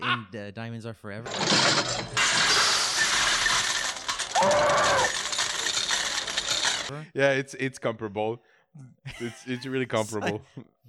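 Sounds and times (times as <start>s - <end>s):
speech: 0.1s - 2.8s, 4.4s - 5.2s, 6.9s - 10.8s
slot machine paying out coins: 1.3s - 6.9s
laughter: 9.0s - 10.7s.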